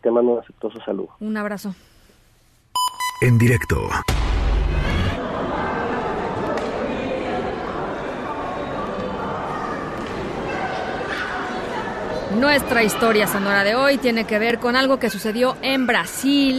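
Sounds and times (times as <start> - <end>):
speech: 0.0 - 1.9, 3.2 - 5.0, 12.3 - 16.5
shopping mall ambience: 5.2 - 16.5.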